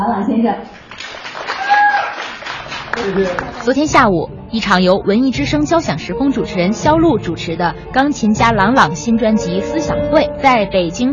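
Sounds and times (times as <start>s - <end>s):
speech: 0.0s - 0.8s, 3.0s - 11.1s
audience applause: 0.8s - 3.8s.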